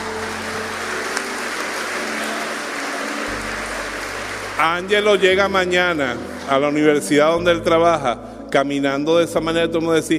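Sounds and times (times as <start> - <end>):
audience applause: 0.0 - 6.8
speech: 4.6 - 10.1.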